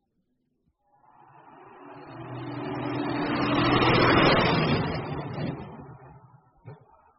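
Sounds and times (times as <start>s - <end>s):
lorry driving past: 1.6s - 6.3s.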